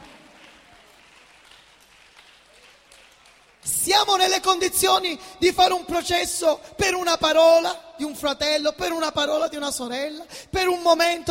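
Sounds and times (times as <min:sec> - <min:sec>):
audience applause: 0:00.0 - 0:03.7
speech: 0:03.9 - 0:11.2.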